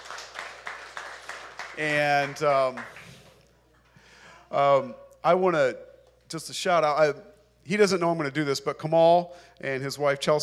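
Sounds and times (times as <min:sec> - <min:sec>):
audience applause: 0:00.0 - 0:03.4
speech: 0:01.8 - 0:03.0, 0:04.5 - 0:10.4.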